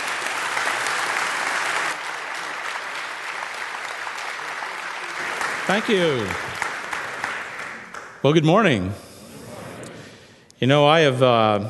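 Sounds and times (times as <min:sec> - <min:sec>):
audience applause welcoming a speaker: 0:00.0 - 0:08.2
speech: 0:05.7 - 0:06.5, 0:08.2 - 0:09.0, 0:10.6 - 0:11.6.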